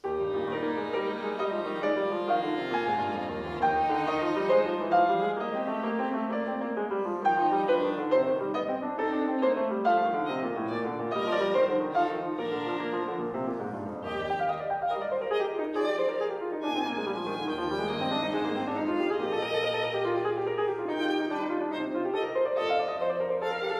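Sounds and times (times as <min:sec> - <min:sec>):
violin sonata: 0:00.0 - 0:23.7.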